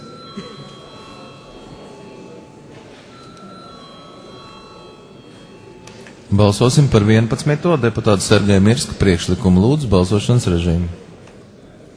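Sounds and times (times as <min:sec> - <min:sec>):
parliament chairman's bell ringing before a vote: 0:00.0 - 0:08.4
low murmur of voices: 0:00.0 - 0:11.9
speech: 0:06.3 - 0:11.0.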